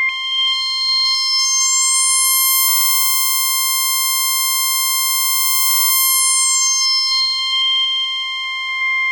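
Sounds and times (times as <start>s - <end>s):
synth line in C4: 0.1s - 9.0s.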